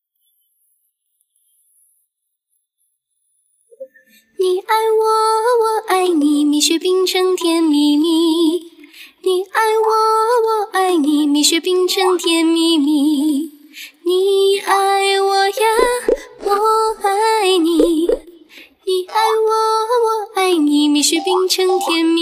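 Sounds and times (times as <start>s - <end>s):
vocals: 3.9s - 22.2s.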